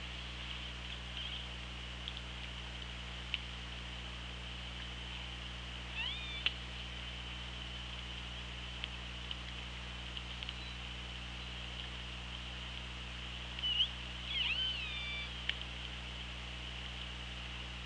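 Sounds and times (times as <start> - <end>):
underwater hum: 0.0 - 17.8
killer whale calls: 13.6 - 15.4.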